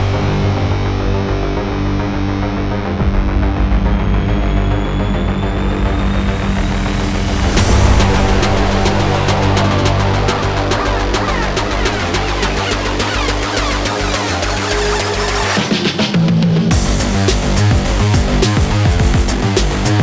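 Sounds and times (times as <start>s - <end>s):
acid electronic dance music: 0.1s - 20.0s.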